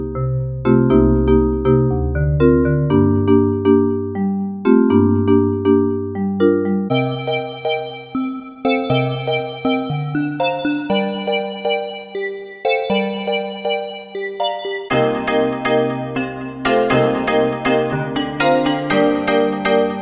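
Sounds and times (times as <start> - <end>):
vibraphone: 0.1 - 19.9.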